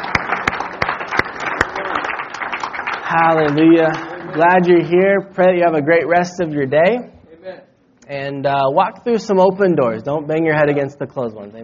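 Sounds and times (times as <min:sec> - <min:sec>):
audience clapping and applause: 0:00.0 - 0:05.0
speech: 0:03.1 - 0:11.6.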